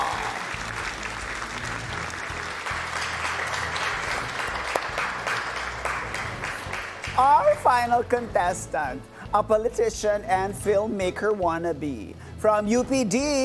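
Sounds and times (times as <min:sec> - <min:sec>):
audience applause for a university contestant at a show: 0:00.0 - 0:07.2
speech: 0:07.2 - 0:13.4.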